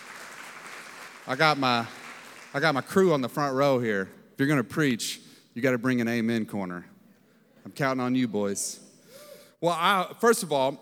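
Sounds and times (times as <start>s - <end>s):
crowd clapping hands: 0.0s - 3.4s
speech: 1.2s - 6.9s, 7.6s - 8.8s, 9.6s - 10.8s.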